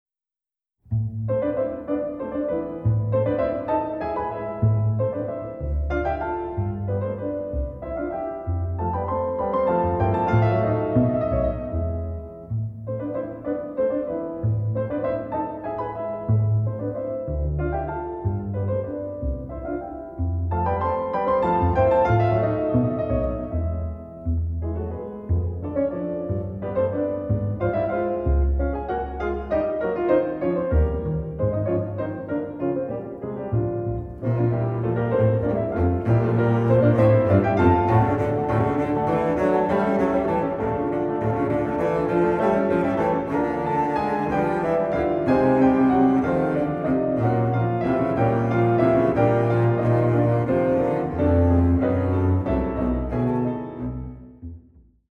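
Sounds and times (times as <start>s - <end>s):
classical sonata movement: 0.8s - 55.1s.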